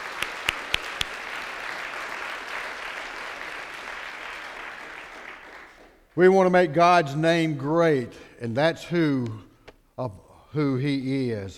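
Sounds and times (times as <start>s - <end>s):
audience applauding: 0.0s - 6.1s
speech: 6.2s - 11.5s.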